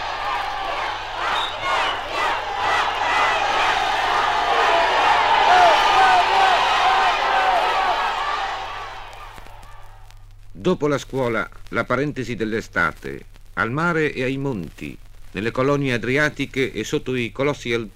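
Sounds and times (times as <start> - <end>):
orphans shouting at a courtyard football match: 0.0 - 10.0
speech: 10.6 - 17.9.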